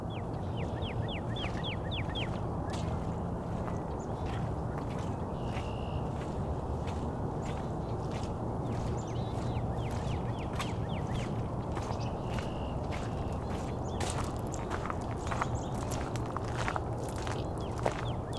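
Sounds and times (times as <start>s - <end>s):
red-winged blackbirds and other birds calling: 0.2s - 18.3s.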